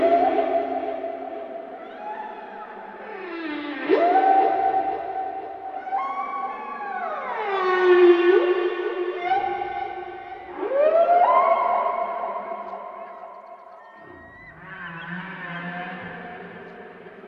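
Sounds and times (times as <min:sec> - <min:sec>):
whale song: 0:00.0 - 0:16.7.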